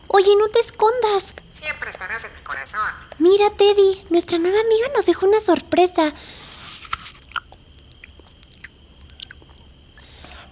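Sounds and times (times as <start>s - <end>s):
speech: 0.2s - 6.4s
chewing and crunching food: 6.2s - 10.4s.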